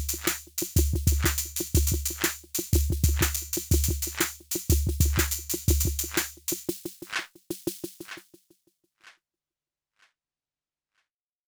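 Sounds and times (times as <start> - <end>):
drums with delay: 0.0 - 8.4.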